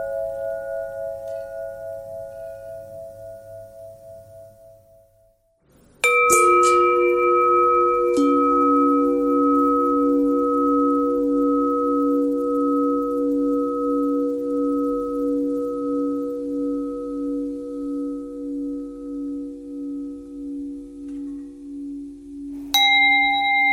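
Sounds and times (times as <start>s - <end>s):
long bell tones with pitch bend: 0.0s - 4.9s, 6.0s - 23.7s.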